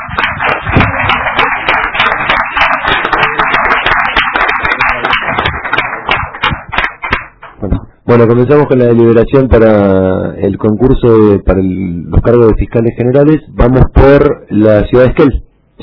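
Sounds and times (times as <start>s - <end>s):
audience applause: 0.0s - 7.6s
speech: 8.1s - 15.8s.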